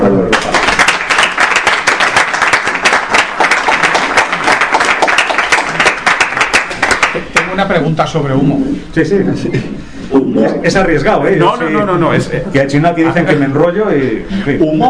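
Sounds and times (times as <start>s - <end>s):
audience applause: 0.3s - 7.5s
speech: 7.6s - 14.8s.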